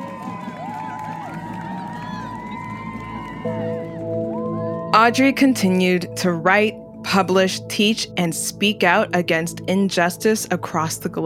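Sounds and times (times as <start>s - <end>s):
crowd cheering and applauding: 0.0s - 5.2s
speech: 3.4s - 3.8s, 4.9s - 11.2s.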